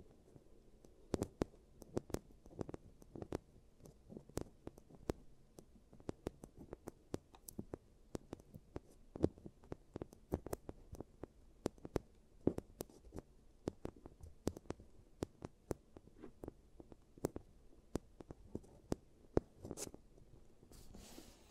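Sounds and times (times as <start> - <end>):
giant teeth treatment clicks and taps: 0.8 - 20.0.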